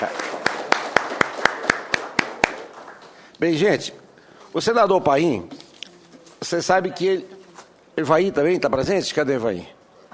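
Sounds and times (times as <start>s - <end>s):
applause: 0.0s - 3.3s
speech: 3.4s - 5.6s, 6.4s - 7.4s, 8.0s - 9.8s.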